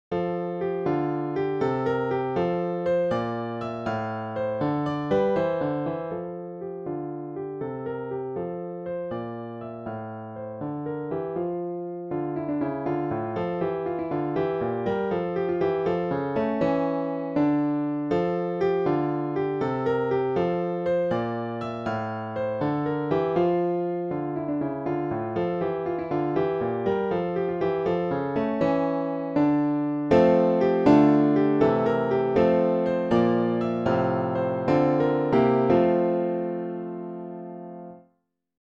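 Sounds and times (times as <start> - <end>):
piano: 0.0 - 38.2.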